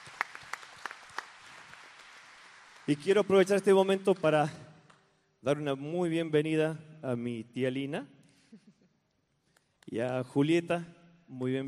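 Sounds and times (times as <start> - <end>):
audience applause: 0.0 - 4.3
speech: 2.9 - 4.6, 5.4 - 8.2, 9.9 - 11.6.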